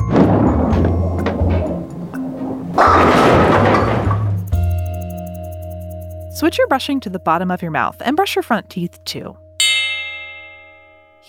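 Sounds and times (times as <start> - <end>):
heavy bowling ball knocking over bowling pins: 0.0 - 4.8
speech: 6.4 - 9.4.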